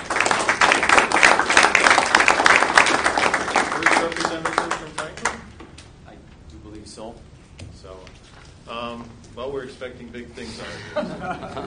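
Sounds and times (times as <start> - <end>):
audience applause: 0.0 - 5.4
speech: 9.8 - 11.6
laughter: 10.4 - 11.6.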